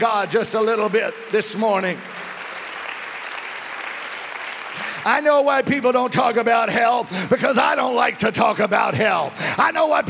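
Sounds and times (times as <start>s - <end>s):
speech: 0.0s - 2.2s, 5.0s - 10.0s
church congregation clapping hands during a service: 0.0s - 7.2s.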